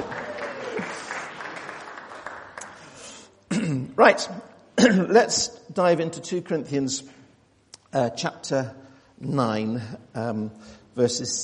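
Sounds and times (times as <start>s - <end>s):
audience applause: 0.0s - 3.2s
speech: 4.0s - 7.2s, 7.9s - 11.4s.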